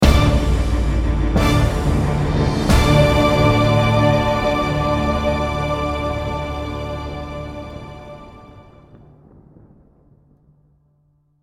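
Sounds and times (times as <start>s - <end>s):
battle end music: 0.0s - 9.0s.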